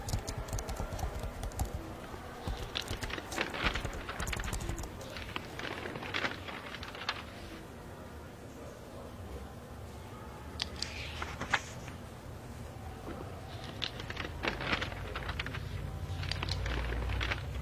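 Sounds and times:
keyboard typing in a library: 0.0 - 5.3
faint murmuring voices: 0.0 - 17.6.

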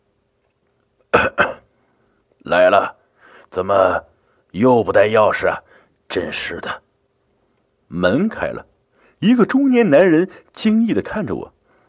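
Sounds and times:
man coughing: 1.1 - 1.8
speech: 2.5 - 6.8, 7.9 - 11.6.

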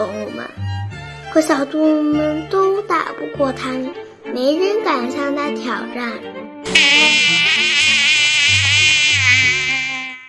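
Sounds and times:
speech: 0.0 - 7.6
high-pitched mosquito whine: 6.7 - 10.2.

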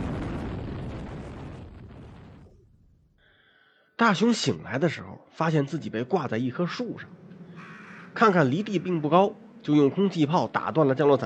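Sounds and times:
explosion of a plane crashing into a mountain: 0.0 - 2.9
speech: 4.0 - 7.2, 8.2 - 11.2.

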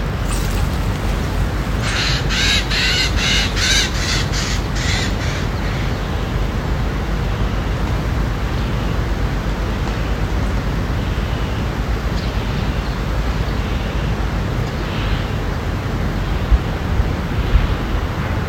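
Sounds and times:
low rumbling background noise: 0.0 - 18.4
bird harsh cawing: 0.2 - 6.1.

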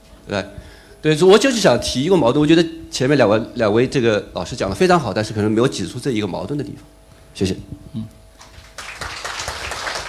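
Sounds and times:
speech: 0.3 - 8.2
audience applause: 8.4 - 10.0.

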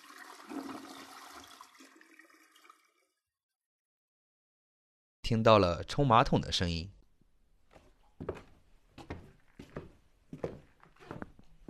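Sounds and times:
speech: 5.3 - 7.0
soft thudding footsteps at a walking pace: 7.7 - 11.6.

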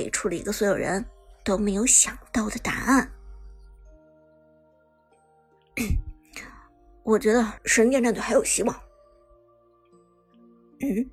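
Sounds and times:
speech: 0.0 - 3.2, 5.8 - 6.5, 7.1 - 8.9, 10.8 - 11.1
person coughing: 5.8 - 6.1.

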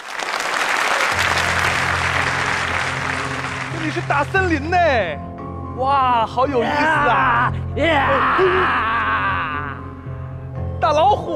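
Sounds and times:
audience applause: 0.0 - 4.7
speech: 3.8 - 8.9, 10.8 - 11.3.

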